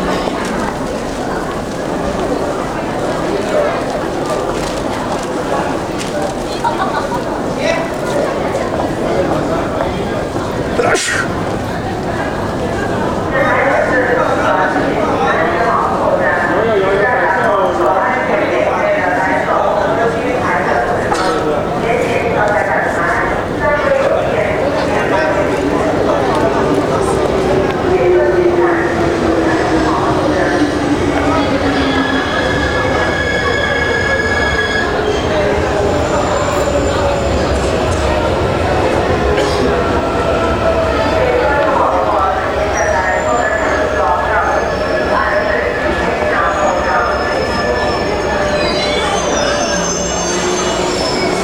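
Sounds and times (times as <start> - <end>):
Beijing subway sounds: 0.0 - 51.4.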